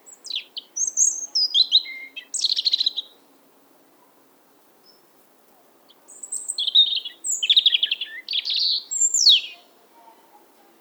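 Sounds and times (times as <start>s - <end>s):
European robin singing: 0.0s - 3.2s, 5.9s - 9.8s.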